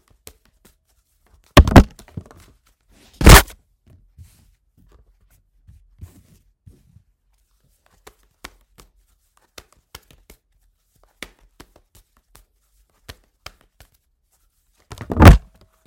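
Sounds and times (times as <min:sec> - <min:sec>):
tarot cards spilling and falling onto a surface: 0:01.6 - 0:02.3, 0:03.2 - 0:03.5, 0:14.9 - 0:15.5.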